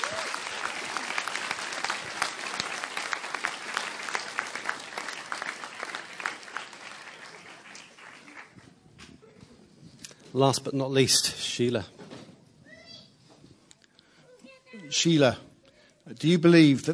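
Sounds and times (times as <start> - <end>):
audience cheering: 0.0 - 8.4
speech: 10.4 - 12.0, 15.0 - 15.5, 16.2 - 16.9.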